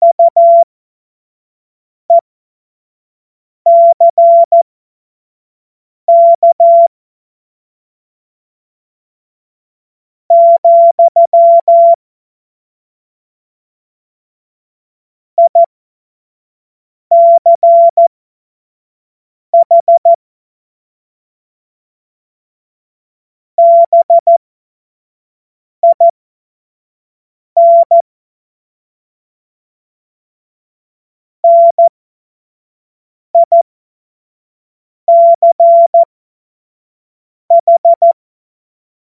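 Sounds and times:
CW Morse code beeps: 0.0 - 0.6, 3.7 - 4.6, 6.1 - 6.9, 10.3 - 12.0, 17.1 - 18.1, 19.6 - 20.2, 23.6 - 24.4, 25.8 - 26.1, 27.6 - 28.0, 31.4 - 31.9, 33.4 - 33.6, 35.1 - 36.1, 37.5 - 38.2.

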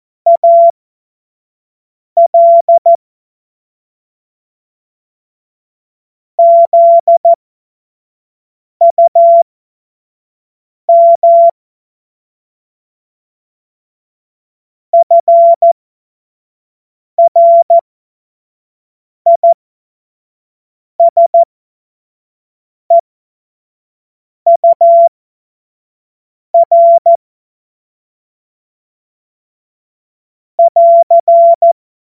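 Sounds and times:
CW Morse code beeps: 0.3 - 0.7, 2.2 - 3.0, 6.4 - 7.4, 8.8 - 9.4, 10.9 - 11.5, 15.0 - 15.8, 17.2 - 17.8, 21.0 - 21.5, 24.5 - 25.1, 26.6 - 27.2, 30.6 - 31.8.

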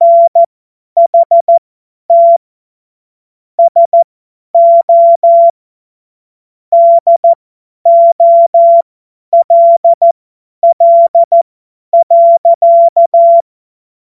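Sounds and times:
CW Morse code beeps: 0.0 - 2.4, 3.6 - 4.0, 4.6 - 5.6, 6.7 - 8.8, 9.4 - 11.4, 12.0 - 13.4.

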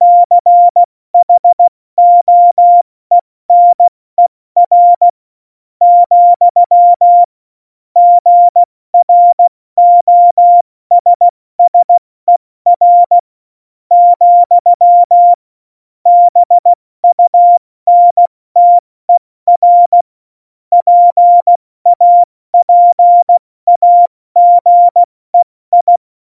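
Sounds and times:
CW Morse code beeps: 0.0 - 2.8, 3.5 - 3.9, 4.6 - 5.1, 5.8 - 7.3, 8.0 - 13.2, 13.9 - 15.4, 16.1 - 18.9, 19.5 - 20.0, 20.7 - 26.0.

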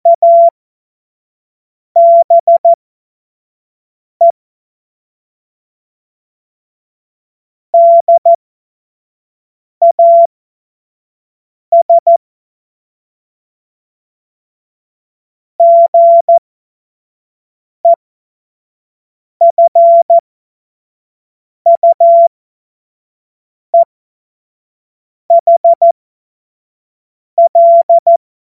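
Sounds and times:
CW Morse code beeps: 0.1 - 0.5, 2.0 - 2.8, 7.8 - 8.4, 9.8 - 10.3, 11.7 - 12.2, 15.6 - 16.4, 19.4 - 20.2, 21.7 - 22.3, 25.3 - 25.9, 27.4 - 28.2.

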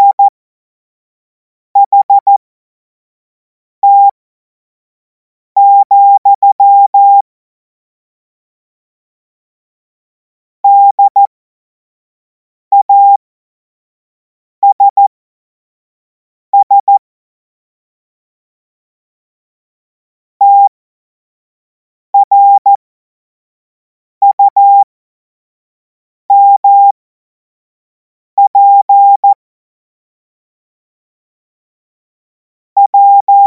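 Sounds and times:
CW Morse code beeps: 0.0 - 0.3, 1.8 - 2.3, 3.8 - 4.1, 5.6 - 7.2, 10.7 - 11.3, 12.7 - 13.2, 14.6 - 15.0, 16.6 - 17.0, 22.2 - 22.8, 24.2 - 24.8, 26.3 - 26.9, 28.4 - 29.4, 32.8 - 33.4.

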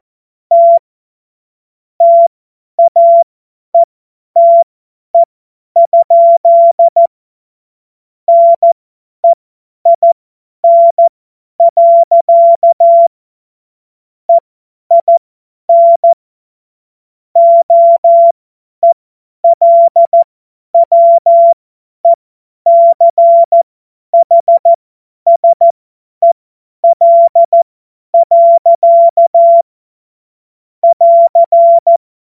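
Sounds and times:
CW Morse code beeps: 0.5 - 0.8, 2.0 - 3.2, 3.8 - 4.6, 5.2 - 7.1, 8.3 - 13.1, 14.9 - 16.2, 17.4 - 23.6, 24.2 - 27.6, 28.2 - 29.6, 30.8 - 32.0.

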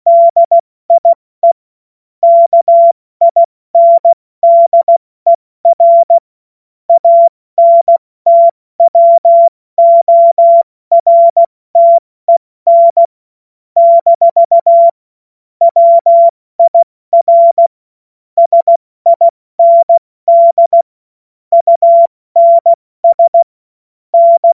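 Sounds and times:
CW Morse code beeps: 0.1 - 1.6, 2.2 - 5.0, 5.7 - 6.2, 6.9 - 13.1, 13.8 - 15.0, 15.6 - 17.7, 18.4 - 20.9, 21.5 - 23.5, 24.2 - 24.5.

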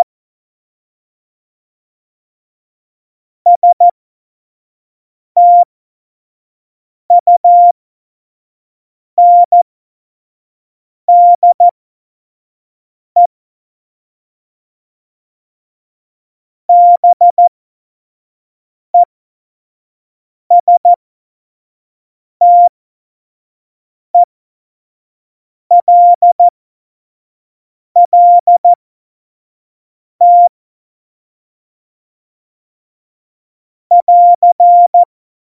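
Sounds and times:
CW Morse code beeps for a Morse course: 3.5 - 3.8, 5.4 - 5.6, 7.2 - 7.7, 9.2 - 9.6, 11.1 - 11.7, 16.7 - 17.5, 20.5 - 21.0, 22.4 - 22.7, 25.7 - 26.5, 28.0 - 28.8, 30.2 - 30.5, 33.9 - 35.1.

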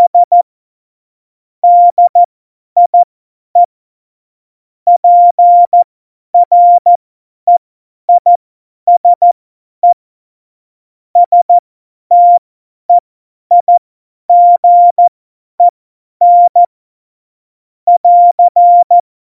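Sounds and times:
CW Morse code at tempo 70: 0.0 - 0.4, 1.6 - 2.3, 4.9 - 5.8, 6.4 - 7.6, 8.2 - 10.0, 11.2 - 11.5, 12.1 - 12.4, 13.5 - 16.7, 17.9 - 19.0.

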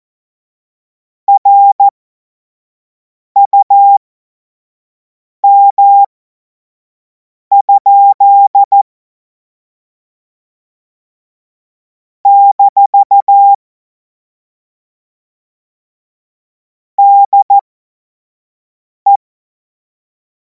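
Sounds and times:
CW Morse code beeps: 1.3 - 1.9, 3.4 - 4.0, 5.4 - 6.1, 7.5 - 8.8, 12.3 - 13.6, 17.0 - 17.6.

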